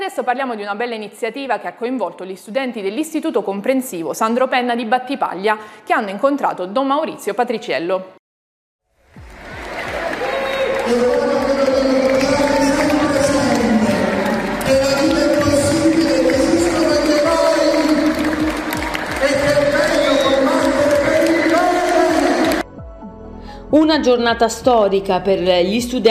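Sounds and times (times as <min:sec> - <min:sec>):
speech: 0:00.0 - 0:08.2, 0:10.9 - 0:11.2, 0:23.7 - 0:26.1
students applauding: 0:09.1 - 0:22.6.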